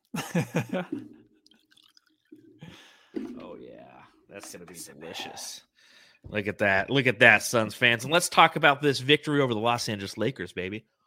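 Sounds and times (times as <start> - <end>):
laughter: 0.1 - 1.0
speech: 0.1 - 1.2, 4.3 - 10.9
scotch whiskey being poured: 0.9 - 3.6.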